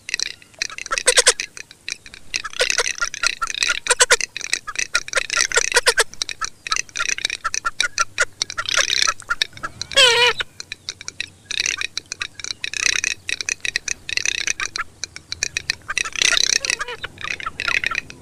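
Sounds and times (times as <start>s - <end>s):
garganey giving dry crackling rattles: 0.1s - 18.2s.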